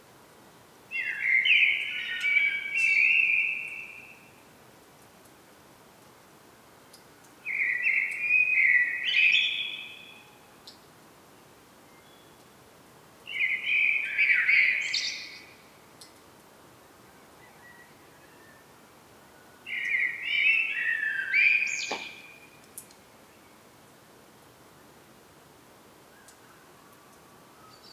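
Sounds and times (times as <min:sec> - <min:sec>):
Common blackbird singing flute-like phrases: 0:00.9 - 0:04.4, 0:07.4 - 0:10.5, 0:13.3 - 0:16.2, 0:17.1 - 0:18.7, 0:19.3 - 0:23.7, 0:26.1 - 0:27.9.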